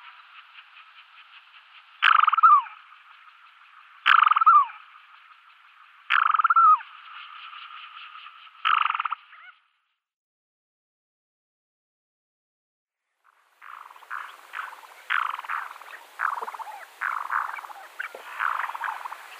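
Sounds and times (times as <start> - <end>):
Black-bellied sandgrouse calls: 0.1 - 3.2, 4.0 - 5.3, 6.1 - 7.8, 8.6 - 9.6, 13.6 - 19.3.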